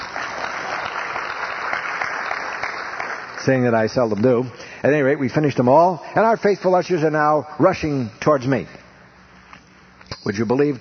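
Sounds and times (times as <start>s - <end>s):
audience applause: 0.0s - 3.8s
speech: 3.4s - 8.8s, 10.2s - 10.7s.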